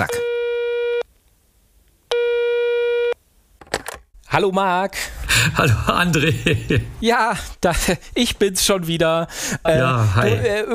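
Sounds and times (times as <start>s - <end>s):
telephone line tone after dialing a number: 0.0s - 1.0s, 2.1s - 3.2s
speech: 4.4s - 10.7s
laughter: 5.3s - 7.0s.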